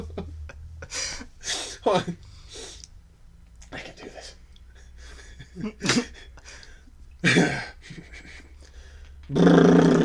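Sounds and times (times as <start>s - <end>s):
speech: 1.8s - 2.3s, 5.6s - 6.2s
person imitating a fart with their mouth: 9.3s - 10.0s.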